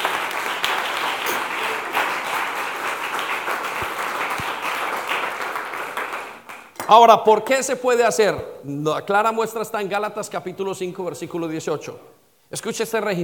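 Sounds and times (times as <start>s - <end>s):
audience applause: 0.0s - 6.7s
speech: 6.9s - 13.2s.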